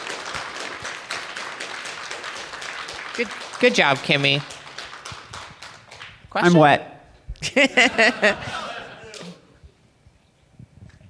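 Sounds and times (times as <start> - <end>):
audience applause: 0.0 - 6.5
speech: 3.2 - 4.6, 6.3 - 8.6
laughter: 7.4 - 9.6.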